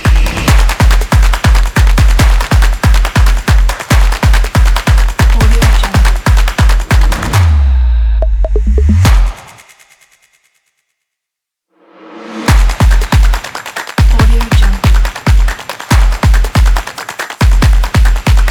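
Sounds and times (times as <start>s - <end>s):
percussion kit: 0.0s - 10.2s, 12.4s - 18.4s.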